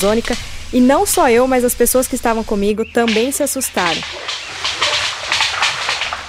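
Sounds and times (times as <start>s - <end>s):
speech: 0.0s - 4.4s
white-lipped peccary call: 3.1s - 6.2s.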